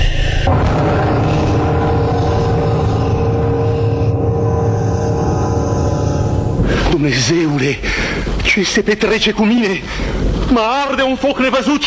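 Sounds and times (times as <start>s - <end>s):
droning low hum: 0.0s - 10.5s
thunderbolt crack and rumble: 0.3s - 11.5s
speech: 7.0s - 11.8s.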